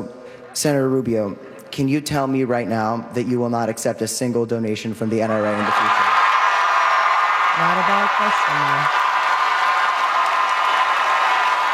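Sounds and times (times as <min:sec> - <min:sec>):
speech: 0:00.6 - 0:06.1, 0:07.6 - 0:09.0
large audience applause: 0:05.4 - 0:11.7.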